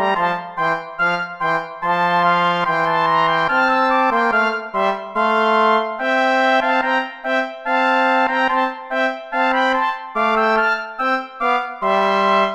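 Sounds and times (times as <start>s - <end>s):
play-along backing music without trombone: 0.0s - 12.5s.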